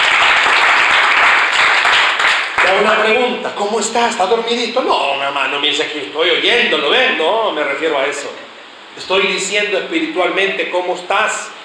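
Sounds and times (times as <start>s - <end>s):
crowd applauding: 0.0s - 3.0s
speech: 3.1s - 11.5s.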